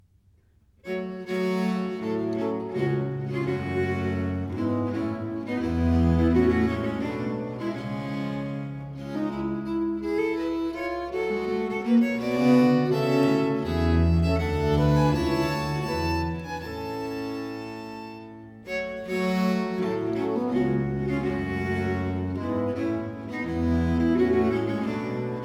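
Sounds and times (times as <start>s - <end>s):
English music for viols in G minor: 0.8s - 25.4s.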